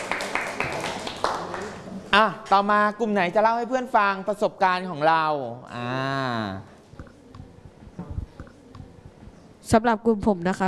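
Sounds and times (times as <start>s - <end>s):
classroom applause: 0.0s - 1.8s
speech: 2.2s - 6.7s, 9.7s - 10.6s.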